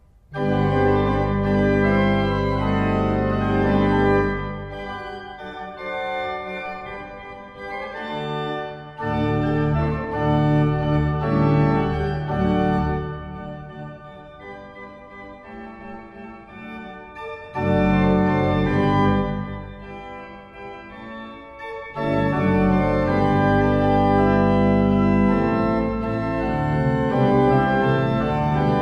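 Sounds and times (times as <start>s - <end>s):
pipe organ: 0.2s - 28.8s.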